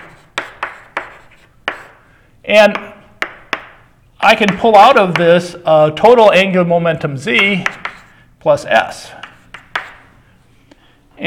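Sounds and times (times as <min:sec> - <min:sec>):
writing strokes during a physics lecture on angular momentum: 0:00.0 - 0:02.0, 0:07.4 - 0:08.2, 0:09.1 - 0:10.1
speech: 0:02.5 - 0:02.9, 0:04.2 - 0:07.8, 0:08.4 - 0:09.2.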